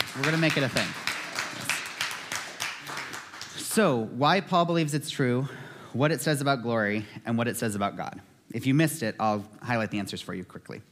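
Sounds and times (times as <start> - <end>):
audience clapping for scripture: 0.0 - 4.0
speech: 0.2 - 1.1, 3.8 - 10.9.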